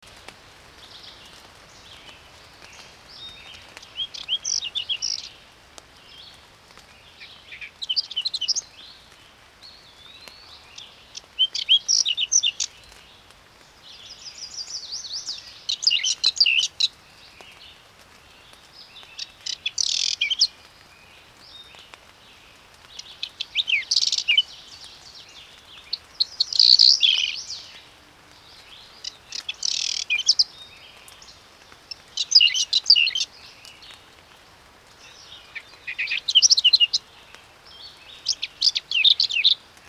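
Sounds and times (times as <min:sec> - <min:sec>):
Whinchat song: 0:02.8 - 0:05.3, 0:10.4 - 0:12.9, 0:14.1 - 0:17.0, 0:19.2 - 0:20.6, 0:22.9 - 0:27.8, 0:28.6 - 0:33.9, 0:35.0 - 0:39.6.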